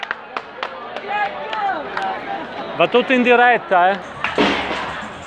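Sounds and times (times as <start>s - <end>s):
scattered sharp claps: 0.0s - 2.2s, 3.9s - 4.7s
speech: 1.0s - 4.2s.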